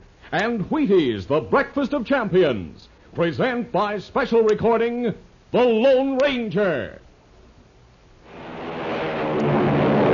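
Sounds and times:
speech: 0:00.3 - 0:07.0
American Airlines flagship airliner taking off: 0:08.3 - 0:10.1.

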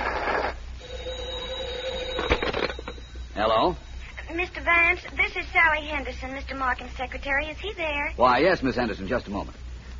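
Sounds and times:
telephone ringing: 0:00.0 - 0:06.1
speech: 0:03.4 - 0:09.6.

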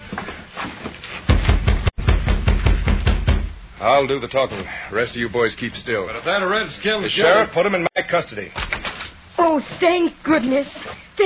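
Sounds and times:
knocking on a door: 0:01.3 - 0:03.6
speech: 0:03.8 - 0:08.8, 0:09.5 - 0:11.2.

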